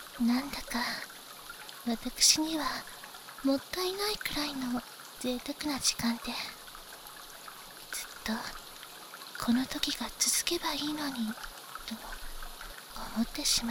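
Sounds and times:
rain at an open-air hot spring bath: 0:00.0 - 0:13.6.

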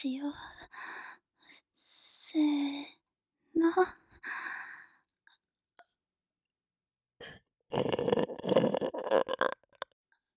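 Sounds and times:
speech: 0:00.0 - 0:00.8, 0:03.6 - 0:04.0
person burping: 0:07.2 - 0:09.9.

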